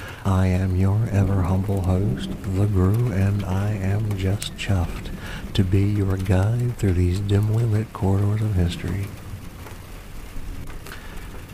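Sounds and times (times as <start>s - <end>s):
raindrops drumming on the roof: 0.0s - 11.5s
rolling thunder: 0.0s - 11.5s
speech: 0.2s - 9.2s.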